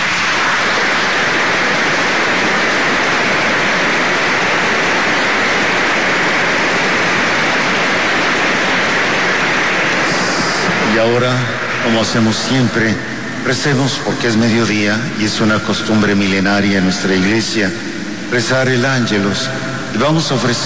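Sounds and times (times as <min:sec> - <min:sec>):
applause welcoming new seminarians: 0:00.0 - 0:16.5
speech: 0:12.0 - 0:20.6.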